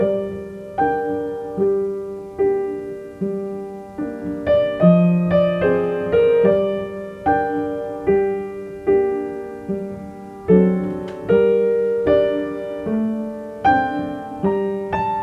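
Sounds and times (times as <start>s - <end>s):
simple sad tune: 0.0s - 15.2s.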